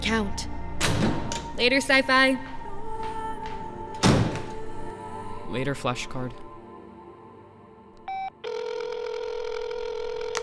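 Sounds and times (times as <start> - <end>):
speech: 0.1 - 2.5, 5.5 - 6.4
telephone ringing: 8.1 - 10.4.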